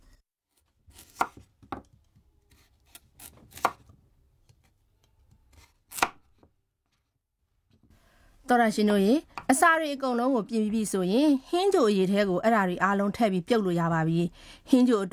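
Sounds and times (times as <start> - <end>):
knife slicing peeled carrots and potatoes into thick rings on a board: 0.9 - 3.9, 5.5 - 6.5
speech: 8.5 - 15.1.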